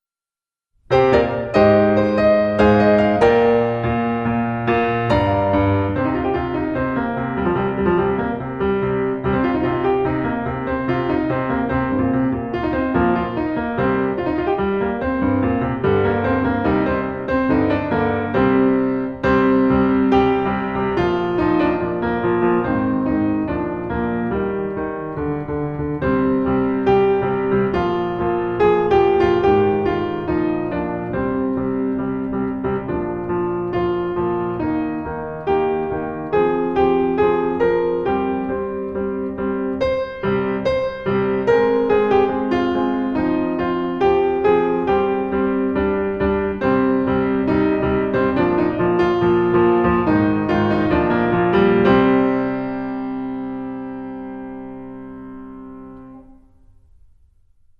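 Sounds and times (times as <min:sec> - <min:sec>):
piano: 0:00.8 - 0:57.7.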